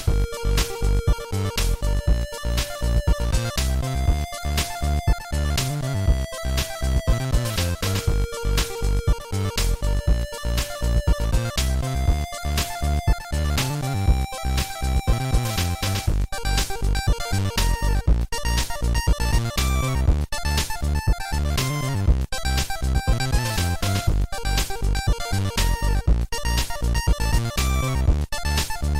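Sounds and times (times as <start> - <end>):
8-bit music: 0.0 - 28.9.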